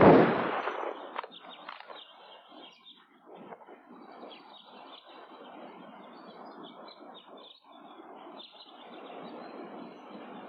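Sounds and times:
gunfire volley fired on command in a dubbed film: 0.0 - 1.4.

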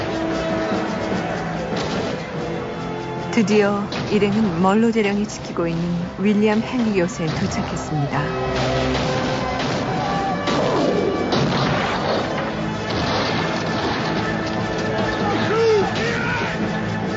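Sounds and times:
shouting voices and crowd clamor: 0.0 - 2.8, 6.8 - 11.5, 14.6 - 17.1
speech: 3.4 - 9.1
heavy French cannon fire pounding a fort: 6.8 - 14.4.

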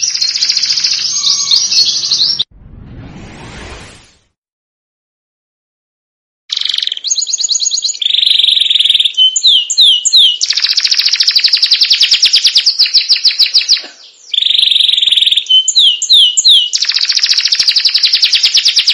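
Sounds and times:
Belgian canary singing trills and whistled notes: 0.0 - 2.5, 6.5 - 18.9.

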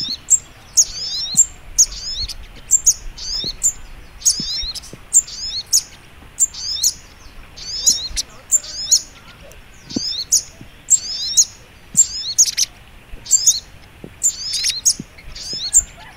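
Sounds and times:
Little Spiderhunter chirping song: 0.0 - 16.0.

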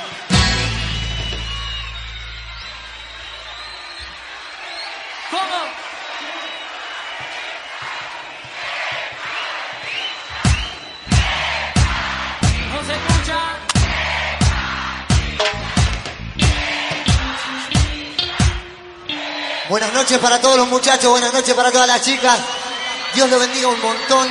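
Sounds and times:
live crowd applause and cheering at a cumbia villera concert: 0.0 - 24.2
music with a thumping beat: 10.4 - 18.8
speech: 20.2 - 24.2.

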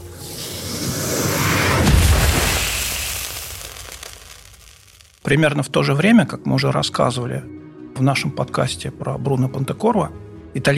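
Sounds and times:
nuclear explosion boom sound effect with rumbling roar: 0.4 - 5.1
speech: 5.3 - 10.7.

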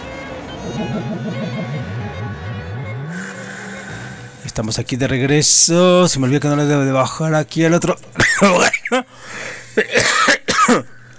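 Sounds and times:
laughter: 0.4 - 4.4
speech: 0.7 - 1.6, 4.6 - 10.9
person coughing harshly: 8.2 - 9.1, 9.8 - 11.0.

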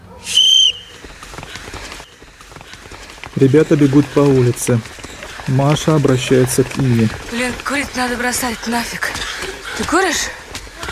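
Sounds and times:
shrill referee-style whistle blast starting a cross-country run: 0.2 - 1.0
low bustle of movement and scattered noise: 0.7 - 10.9
speech: 3.4 - 9.2, 9.8 - 10.4.

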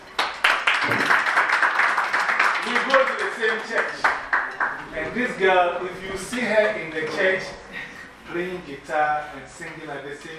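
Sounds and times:
audience clapping hands for a young girl at a church gathering: 0.0 - 4.9
speech: 2.8 - 4.2, 5.0 - 7.6, 8.3 - 10.3.

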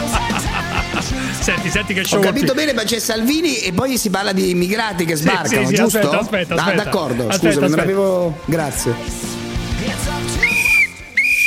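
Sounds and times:
laughter: 0.0 - 2.8, 5.2 - 8.2
speech: 1.4 - 9.3
sustained high-pitched whistle blasts: 10.4 - 11.4.

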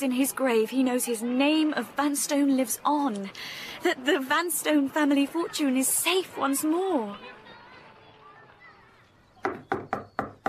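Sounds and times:
speech: 0.0 - 7.3
faint murmured voices: 0.0 - 9.9
knocking on a front door: 9.4 - 10.4.

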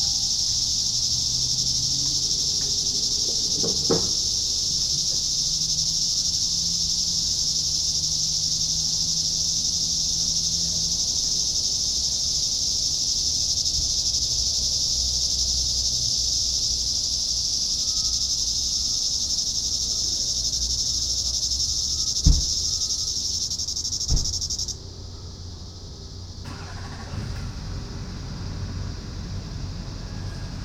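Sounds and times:
cicada chorus: 0.0 - 30.6.

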